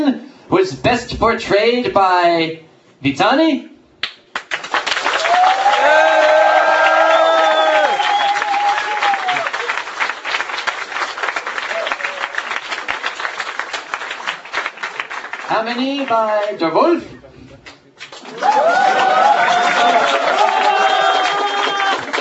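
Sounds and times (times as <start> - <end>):
speech: 0.1 - 3.7, 15.6 - 17.2
crowd clapping: 4.0 - 17.0, 17.6 - 22.1
whoops and cheers: 5.1 - 9.8, 11.7 - 12.5, 18.3 - 22.1.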